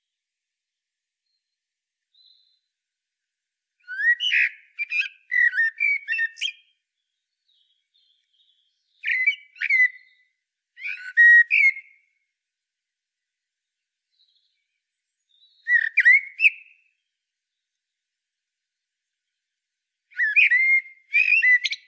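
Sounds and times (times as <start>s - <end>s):
common blackbird singing: 3.8s - 6.7s, 7.4s - 12.0s, 14.1s - 17.0s, 20.1s - 21.8s.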